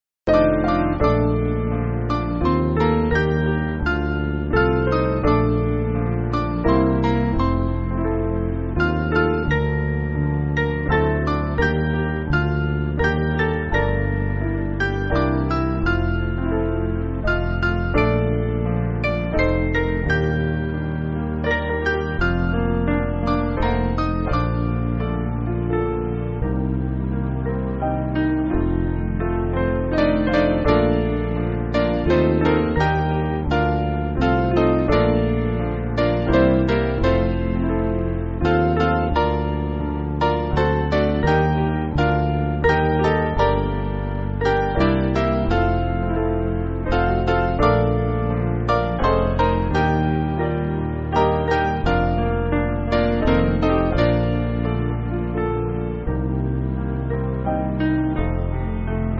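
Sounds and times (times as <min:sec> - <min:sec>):
piano backing music for churches: 0:00.3 - 0:59.1.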